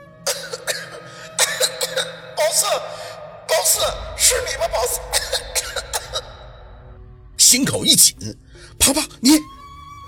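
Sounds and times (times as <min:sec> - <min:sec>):
woman coughing: 0:00.3 - 0:02.2, 0:05.1 - 0:06.4
speech: 0:02.5 - 0:05.5, 0:07.5 - 0:10.0.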